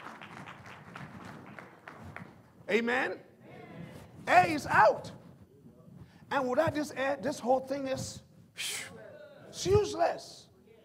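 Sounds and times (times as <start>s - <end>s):
audience applauding: 0.0s - 2.4s
speech: 2.7s - 3.3s, 4.3s - 5.2s, 6.3s - 8.9s, 9.6s - 10.4s.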